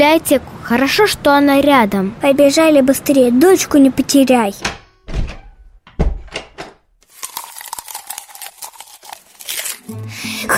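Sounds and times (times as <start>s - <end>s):
speech: 0.1s - 4.8s
door slamming: 4.6s - 6.9s
crackling crinkling noise: 7.0s - 9.9s.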